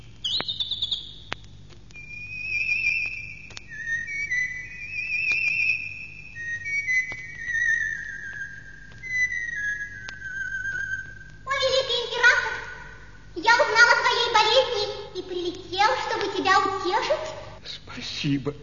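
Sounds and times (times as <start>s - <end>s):
songbird singing outside a window: 0.0s - 1.4s, 2.0s - 13.0s
person speaking: 11.5s - 18.6s.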